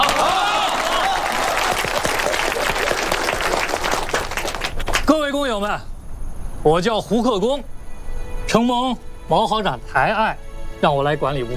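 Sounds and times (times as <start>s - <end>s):
warm applause from an audience: 0.0s - 5.1s
speech: 5.1s - 5.9s, 6.6s - 7.8s, 8.5s - 11.5s.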